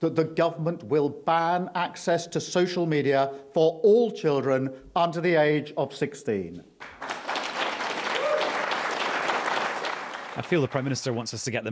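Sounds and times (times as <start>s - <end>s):
speech: 0.0s - 7.1s, 10.4s - 11.7s
applause from campaigners: 6.8s - 11.4s.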